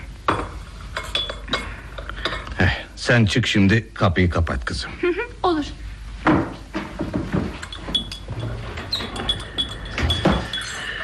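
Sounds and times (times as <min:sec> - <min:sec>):
tea glasses set down on tray: 0:00.3 - 0:02.5, 0:07.6 - 0:11.0
speech: 0:03.0 - 0:06.4.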